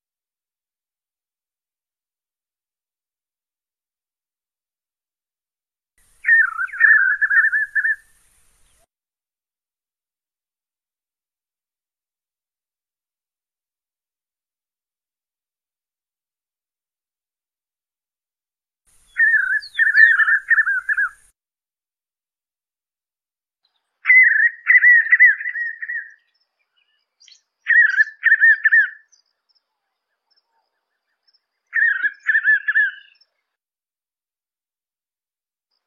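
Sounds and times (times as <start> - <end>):
western striolated puffbird singing: 6.0 - 8.9, 19.0 - 21.3, 23.6 - 33.6.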